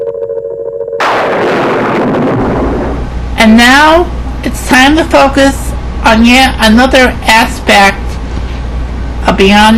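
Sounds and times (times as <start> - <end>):
thunderclap: 1.0 - 3.2
speech: 3.5 - 8.1, 9.3 - 9.7.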